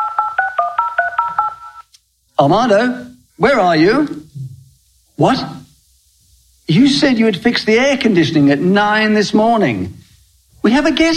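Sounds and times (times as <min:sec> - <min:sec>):
phone number dialed with touch-tone beeps: 0:00.0 - 0:01.8
speech: 0:02.4 - 0:04.2, 0:05.2 - 0:05.6, 0:06.7 - 0:10.0, 0:10.6 - 0:11.1.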